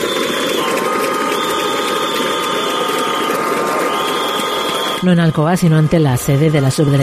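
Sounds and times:
applause: 0:00.0 - 0:05.0
protest whistles: 0:00.0 - 0:05.0
speech: 0:05.0 - 0:07.0.

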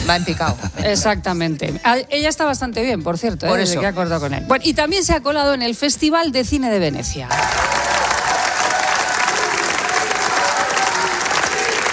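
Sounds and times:
speech: 0:00.1 - 0:08.0
festival audience applause at Venice Film Festival: 0:07.3 - 0:11.9.

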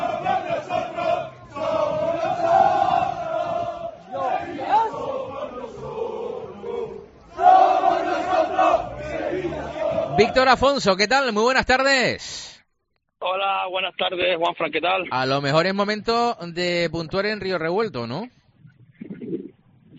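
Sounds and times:
large angry football crowd chanting in unison: 0:00.0 - 0:10.7
speech: 0:10.2 - 0:12.4, 0:13.2 - 0:18.4.

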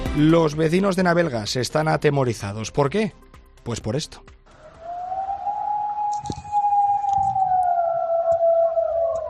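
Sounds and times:
speech: 0:00.1 - 0:04.3
wolf howling: 0:04.5 - 0:09.2.

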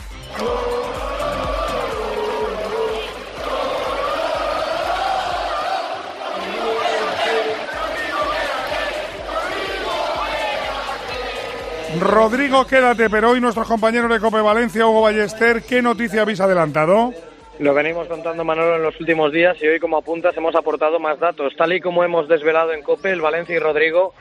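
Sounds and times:
football fans chanting a player's name: 0:00.0 - 0:12.4
speech: 0:12.0 - 0:24.2.

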